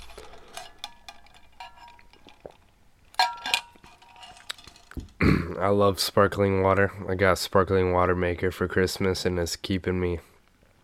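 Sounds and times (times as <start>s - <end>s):
glass clinking while getting a drink: 0.0s - 5.0s
speech: 5.3s - 10.3s.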